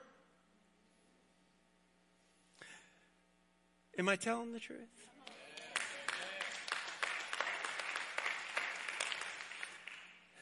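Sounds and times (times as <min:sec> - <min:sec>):
speech: 0:04.0 - 0:05.2
few people clapping: 0:05.2 - 0:10.4.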